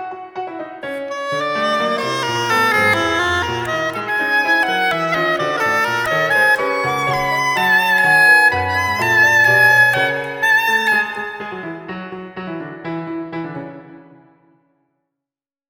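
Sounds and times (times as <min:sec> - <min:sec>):
oboe sonata: 0:00.8 - 0:12.0.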